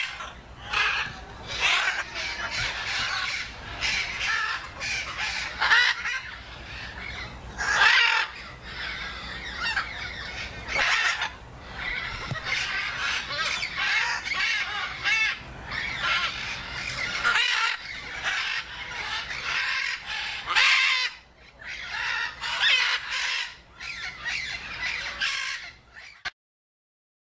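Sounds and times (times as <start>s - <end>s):
macaw screeching and hoarse calling: 0.0s - 26.3s.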